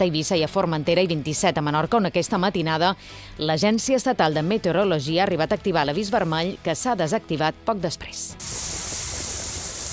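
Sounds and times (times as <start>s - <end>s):
speech: 0.0s - 9.0s
rain falling in Mahó: 8.4s - 9.9s.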